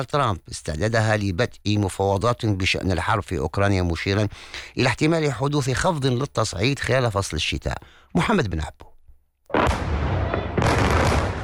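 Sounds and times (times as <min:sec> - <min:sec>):
speech: 0:00.0 - 0:08.9
powerful explosions from air strikes: 0:09.5 - 0:11.4.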